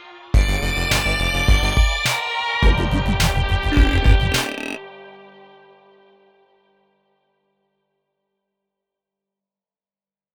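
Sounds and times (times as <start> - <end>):
electro breakdance music: 0.4 - 4.8.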